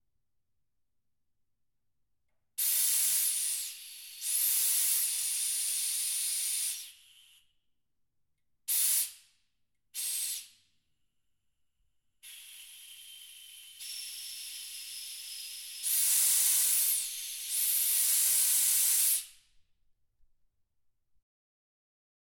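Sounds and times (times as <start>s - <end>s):
air cylinder: 2.6s - 7.5s, 10.0s - 10.6s, 12.2s - 19.6s.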